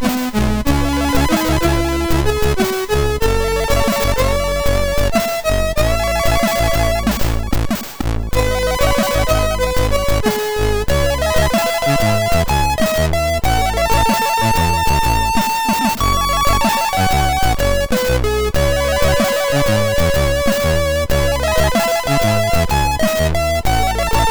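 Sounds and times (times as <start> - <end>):
chiptune music on a MOS6581R2 SID chip: 0.0 - 24.2.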